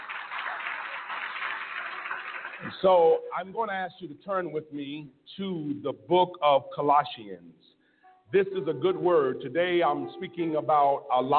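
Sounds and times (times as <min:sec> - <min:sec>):
church congregation applauding during a service: 0:00.0 - 0:03.0
speech: 0:02.6 - 0:07.7, 0:08.3 - 0:11.3.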